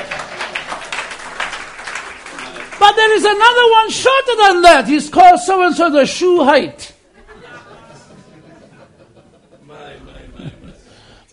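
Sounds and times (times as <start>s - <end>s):
church congregation applauding: 0.0s - 4.8s
speech: 2.9s - 6.9s
laughter: 7.1s - 11.2s.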